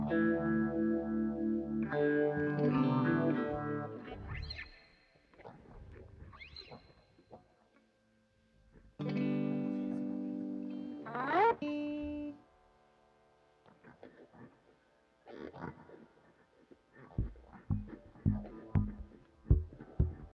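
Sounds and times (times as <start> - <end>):
bass guitar: 0.0 - 4.4, 17.2 - 20.3
guitars: 0.0 - 4.8, 9.0 - 12.4, 17.2 - 20.3.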